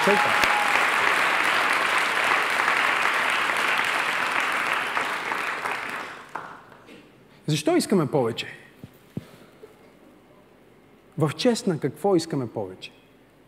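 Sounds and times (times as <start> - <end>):
speech: 0.0 - 0.5, 7.5 - 8.6, 11.2 - 13.0
crowd clapping: 0.0 - 6.9.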